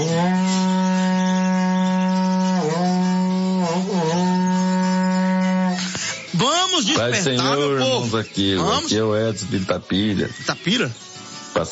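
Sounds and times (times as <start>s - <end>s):
berrante cattle horn being blown: 0.0s - 6.0s
speech: 6.4s - 11.0s.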